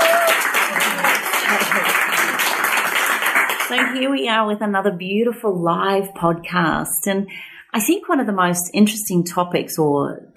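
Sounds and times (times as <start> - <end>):
live audience applause: 0.0 - 4.1
speech: 3.7 - 10.3.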